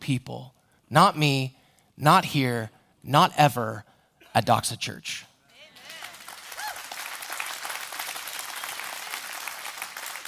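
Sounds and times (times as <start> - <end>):
speech: 0.1 - 5.3
faint cheers and whoops: 5.6 - 7.0
audience clapping together: 5.7 - 10.2.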